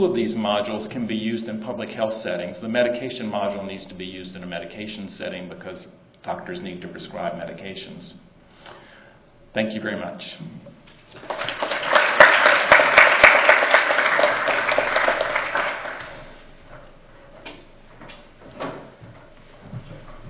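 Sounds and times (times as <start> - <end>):
speech: 0.0 - 8.8, 9.5 - 11.7
audience applause: 11.2 - 16.4.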